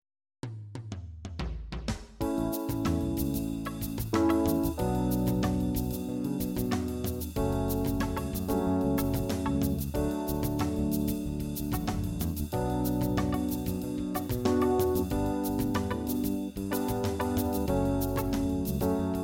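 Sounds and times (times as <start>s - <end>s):
funk music: 2.2s - 19.2s.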